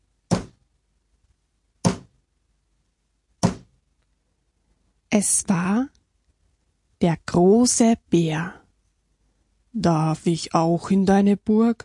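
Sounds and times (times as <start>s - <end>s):
knocking on a door: 0.3s - 0.6s, 1.8s - 2.2s, 3.4s - 3.8s
speech: 5.1s - 6.0s, 7.0s - 8.6s, 9.8s - 11.8s.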